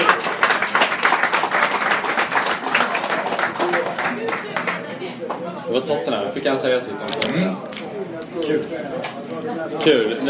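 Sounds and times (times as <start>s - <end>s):
applause: 0.0s - 5.4s
speech: 5.8s - 7.8s, 8.4s - 10.2s.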